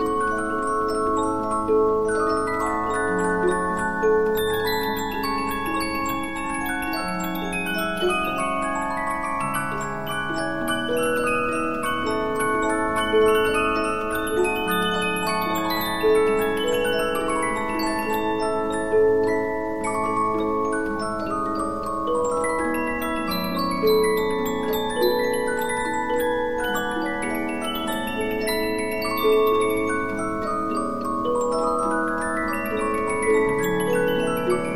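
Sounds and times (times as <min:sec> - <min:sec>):
15-inch Polyphon music box playing: 0:00.0 - 0:34.7.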